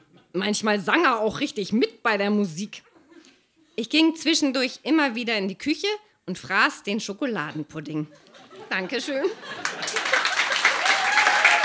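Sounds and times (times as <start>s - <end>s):
speech: 0.4s - 2.9s, 3.8s - 9.9s
laughter: 8.1s - 11.6s
audience applause: 9.4s - 11.6s.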